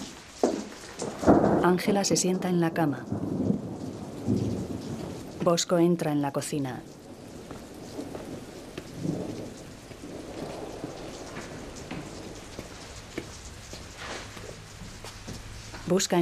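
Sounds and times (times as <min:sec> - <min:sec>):
low thunder rumbling: 0:00.0 - 0:16.2
steady rain pouring down: 0:00.0 - 0:16.2
speech: 0:01.6 - 0:03.4, 0:05.5 - 0:07.0, 0:15.9 - 0:16.2
sharper drips and taps: 0:11.3 - 0:16.0.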